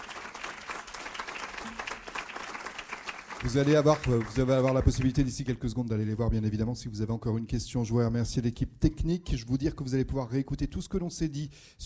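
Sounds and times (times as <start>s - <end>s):
audience applauding: 0.0s - 5.6s
speech: 3.4s - 11.8s.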